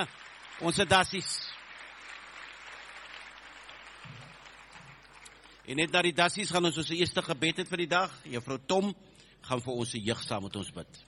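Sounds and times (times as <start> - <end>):
speech: 0.0 - 1.6, 5.7 - 11.0
audience applause for arriving children: 0.0 - 6.1.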